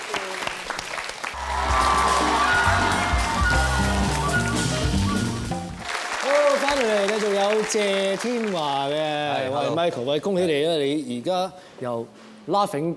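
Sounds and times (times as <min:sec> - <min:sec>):
applause for guests on a Hong Kong show: 0:00.0 - 0:09.3
speech: 0:07.7 - 0:12.9.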